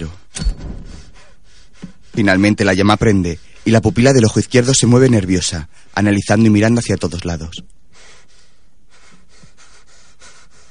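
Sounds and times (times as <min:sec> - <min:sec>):
young man panting in a tiny cramped space: 0:00.9 - 0:02.3, 0:07.9 - 0:10.7
speech: 0:02.2 - 0:07.8.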